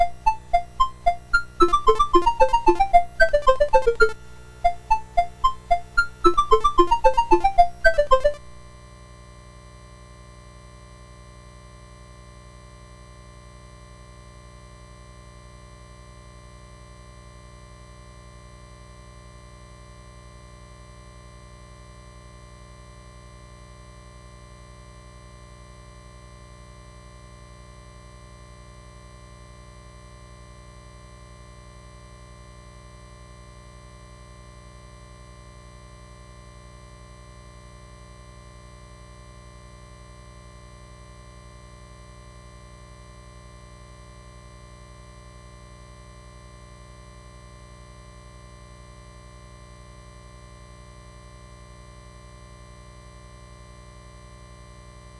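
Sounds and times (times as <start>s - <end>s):
SID MOS6581R2 chiptune music: 0.0s - 8.7s.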